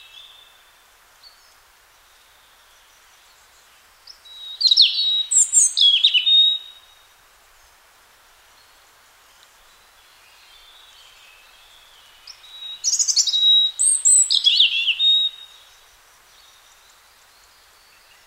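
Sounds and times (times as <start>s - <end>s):
robin singing: 2.2s - 7.0s, 9.6s - 18.2s.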